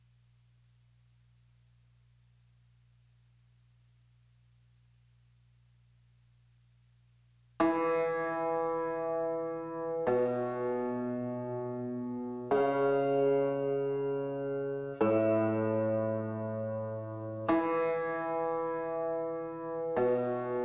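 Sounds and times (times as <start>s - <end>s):
piano: 7.6s - 20.6s.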